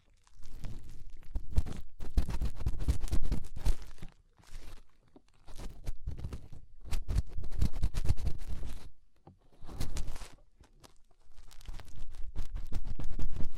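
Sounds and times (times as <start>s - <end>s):
fingers rubbing and scraping inside an ear: 0.6s - 4.0s, 5.5s - 8.9s, 9.6s - 10.4s, 11.6s - 13.5s.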